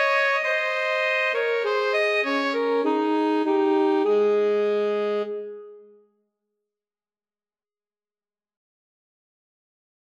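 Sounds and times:
alto saxophone duet: 0.0s - 6.0s.

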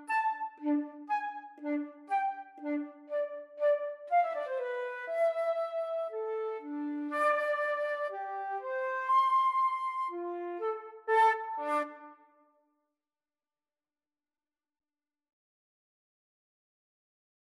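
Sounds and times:
flute duet: 0.0s - 12.3s.

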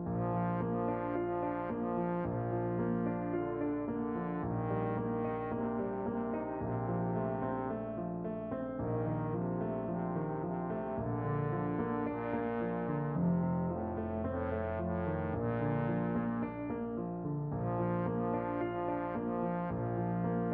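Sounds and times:
trombone: 0.1s - 7.9s, 8.8s - 16.8s, 17.5s - 20.5s.

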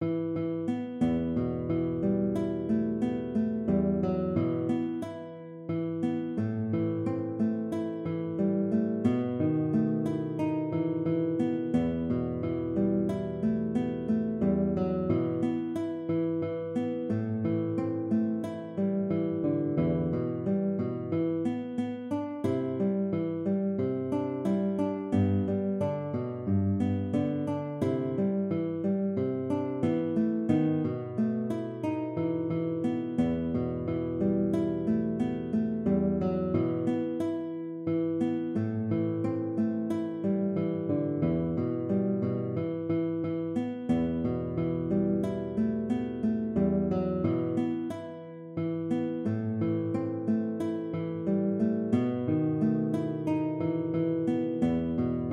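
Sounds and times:
guitar: 0.0s - 55.3s.

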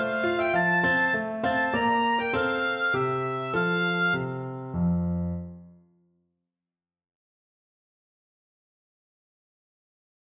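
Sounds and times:
oboe playing a minuet: 0.0s - 4.4s.

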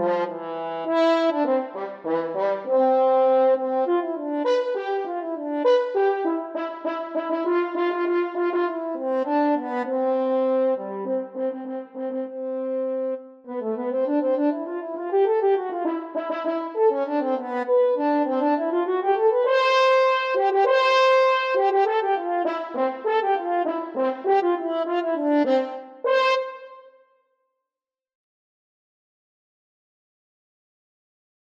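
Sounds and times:
French horn duet: 0.0s - 26.8s.

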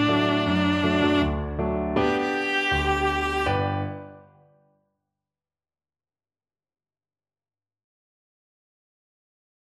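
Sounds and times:
viola: 0.0s - 4.2s.

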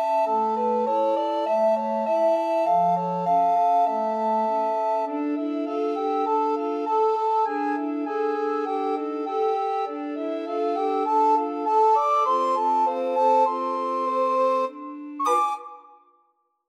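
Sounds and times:
recorder ensemble playing: 0.0s - 16.0s.

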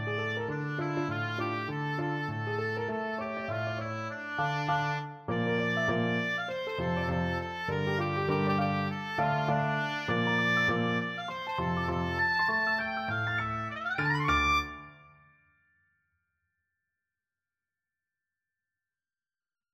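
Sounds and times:
oboe melody: 0.0s - 15.2s.

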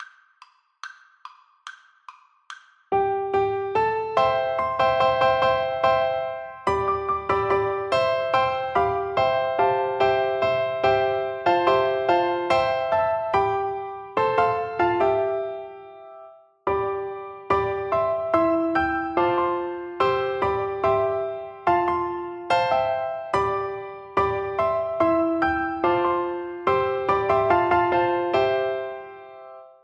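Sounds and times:
piano duet: 2.9s - 29.8s.

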